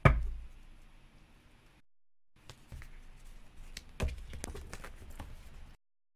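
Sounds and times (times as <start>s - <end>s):
large cards being shuffled: 2.4s - 5.7s.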